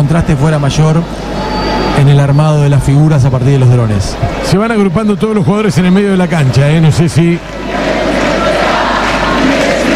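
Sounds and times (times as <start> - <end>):
speech: 0.1 - 7.7
stadium crowd chanting in unison: 7.4 - 9.9.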